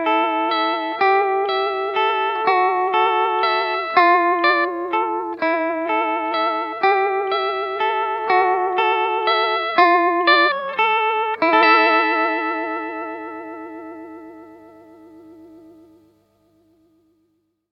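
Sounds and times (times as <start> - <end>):
clean guitar with vibrato: 0.0 - 17.7.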